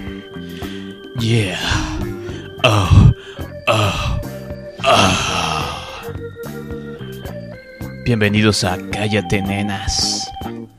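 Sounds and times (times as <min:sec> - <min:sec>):
sultry suggestive music: 0:00.0 - 0:10.7
speech: 0:01.2 - 0:01.9, 0:02.6 - 0:03.1, 0:08.1 - 0:10.2
loud drawn-out moans: 0:01.2 - 0:06.2.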